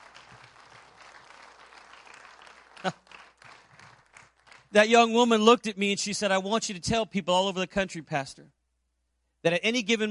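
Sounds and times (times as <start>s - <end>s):
church audience clapping hands: 0.0s - 5.1s
speech: 4.7s - 8.6s, 9.4s - 10.0s.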